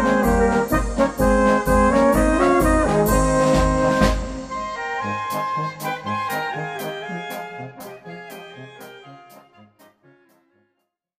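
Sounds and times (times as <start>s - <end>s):
tenor horn: 0.0s - 10.5s.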